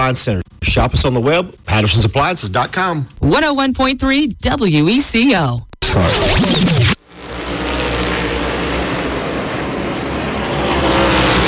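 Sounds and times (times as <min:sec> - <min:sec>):
speech: 0:00.0 - 0:06.9
race cars roaring in the Cookout 400 at Richmond Raceway: 0:07.0 - 0:11.4.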